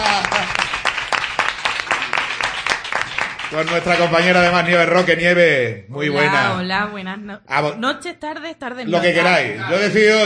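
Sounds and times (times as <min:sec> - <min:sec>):
audience applause: 0:00.0 - 0:04.8
speech: 0:03.5 - 0:10.2.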